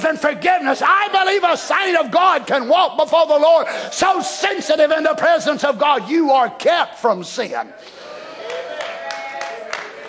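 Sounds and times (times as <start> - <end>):
speech: 0.0 - 8.0
hands clapping: 8.4 - 10.0.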